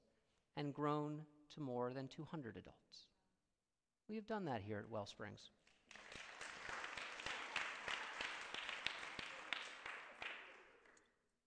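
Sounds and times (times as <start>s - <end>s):
speech: 0.6s - 3.1s, 4.1s - 6.1s
audience clapping: 5.7s - 11.1s.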